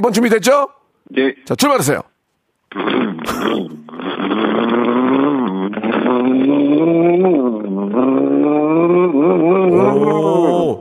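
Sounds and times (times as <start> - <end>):
speech: 0.0 - 2.1, 2.7 - 10.7
voice imitating a motorcycle with a broken muffler: 2.7 - 10.7.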